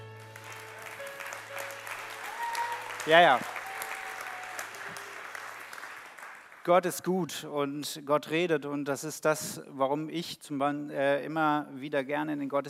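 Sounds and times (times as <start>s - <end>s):
audience applause: 0.0s - 6.8s
speech: 3.0s - 3.5s, 6.6s - 12.6s.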